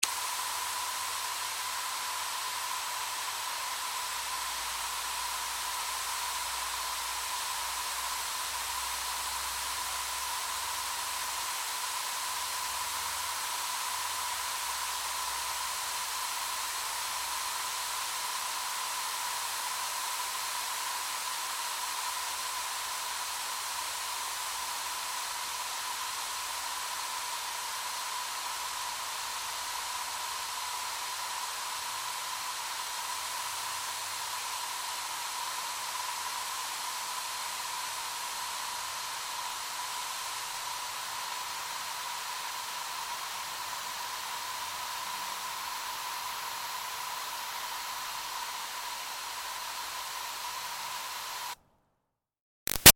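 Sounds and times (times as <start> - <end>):
garden hose water spray mist: 0.0 - 51.6, 52.7 - 52.9.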